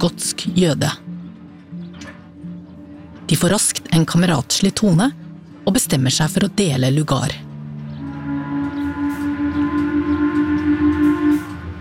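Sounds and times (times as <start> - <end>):
speech: 0.0 - 1.1, 3.3 - 7.5
steamship horn blasting loudly: 7.9 - 11.7.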